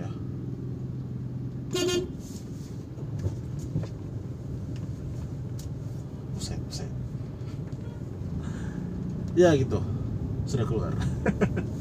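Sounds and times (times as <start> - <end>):
low engine rumble of slow congested traffic: 0.0 - 11.7
short bright car horn toot: 1.7 - 2.2
speech: 9.4 - 9.9, 10.5 - 11.7.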